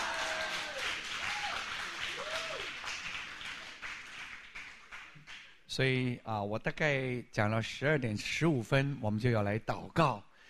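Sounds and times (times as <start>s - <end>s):
audience applause: 0.0s - 5.3s
speech: 5.8s - 10.3s.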